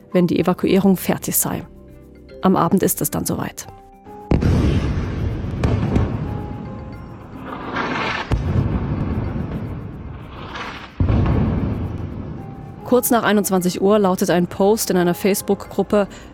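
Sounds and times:
speech: 0:00.1 - 0:01.8, 0:02.4 - 0:03.8, 0:12.9 - 0:16.3
bombardment explosions: 0:04.3 - 0:12.6.

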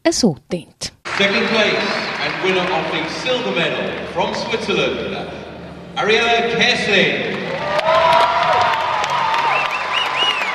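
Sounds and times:
speech: 0:00.0 - 0:05.4, 0:06.0 - 0:08.2
arena crowd applauding: 0:01.0 - 0:05.4, 0:06.9 - 0:10.5
high whoops: 0:07.6 - 0:10.5
whistles: 0:09.4 - 0:10.5.

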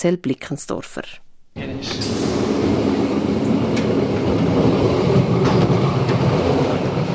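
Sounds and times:
speech: 0:00.0 - 0:02.4
passenger train rolling along the rails: 0:01.6 - 0:07.1.

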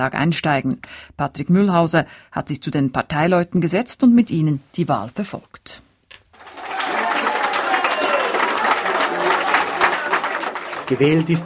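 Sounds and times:
speech: 0:00.0 - 0:05.9, 0:10.9 - 0:11.4
crowd cheering: 0:06.4 - 0:11.4.

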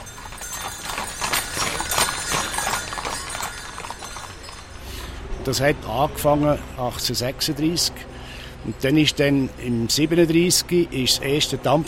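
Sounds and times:
horse-drawn carriage hooves clip-clopping: 0:00.0 - 0:06.6
speech: 0:05.5 - 0:11.8.

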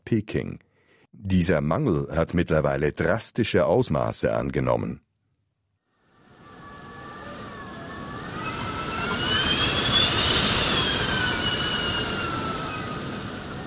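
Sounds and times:
speech: 0:00.1 - 0:05.1
howling whistling wind of a sandstorm: 0:06.0 - 0:13.6.

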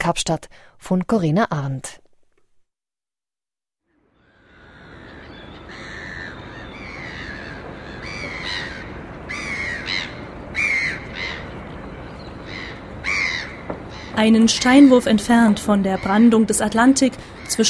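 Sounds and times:
speech: 0:00.0 - 0:02.0, 0:14.2 - 0:17.6
dull drone of the adjacent city: 0:04.0 - 0:17.6
seagulls screaming: 0:04.2 - 0:17.6.

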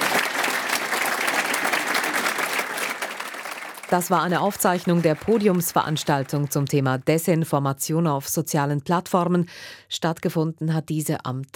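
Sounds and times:
audience applause: 0:00.0 - 0:06.9
speech: 0:03.9 - 0:11.5.

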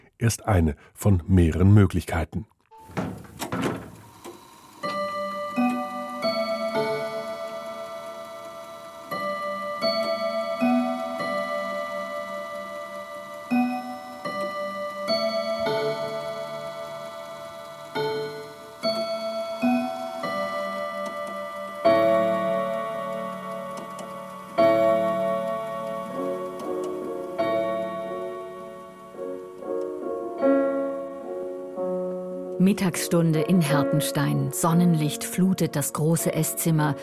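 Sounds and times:
speech: 0:00.2 - 0:03.1, 0:32.8 - 0:37.0
grandfather clock striking a chime melody: 0:02.9 - 0:31.2, 0:33.0 - 0:37.0
faint grandfather clock ticking: 0:04.8 - 0:30.0.

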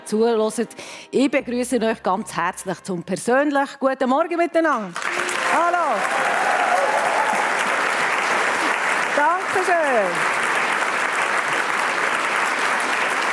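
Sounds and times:
speech: 0:00.1 - 0:05.8, 0:09.2 - 0:10.4
audience applause: 0:04.9 - 0:13.3.

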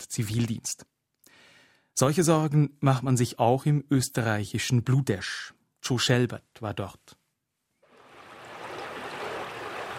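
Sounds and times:
speech: 0:00.0 - 0:00.9, 0:02.0 - 0:07.2
Schwarzbach stream flowing calmly near Bludesch in Vorarlberg in winter: 0:07.9 - 0:09.9.

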